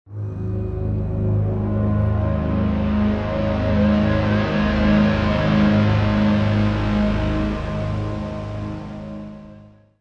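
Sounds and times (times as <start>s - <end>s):
modern foreboding music: 0.1s - 9.9s.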